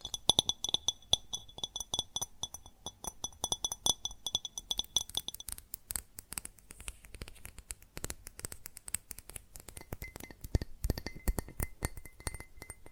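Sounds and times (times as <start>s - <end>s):
rapid tapping on glass and ceramic objects: 0.0s - 5.6s, 9.7s - 12.9s.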